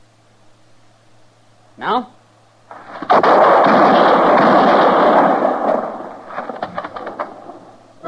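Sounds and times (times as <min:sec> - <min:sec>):
speech: 0:01.8 - 0:02.2
gunshots as a marshal tries to arrest a man: 0:02.7 - 0:07.7.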